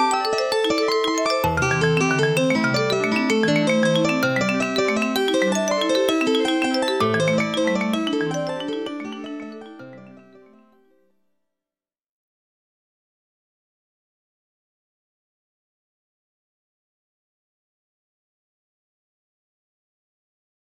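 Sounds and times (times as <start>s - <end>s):
polyrhythmic music: 0.0s - 9.8s.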